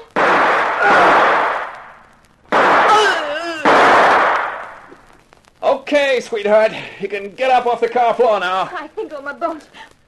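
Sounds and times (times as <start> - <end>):
gunshots: 0.0 - 4.9
person crying out: 2.9 - 3.7
speech: 5.9 - 9.9.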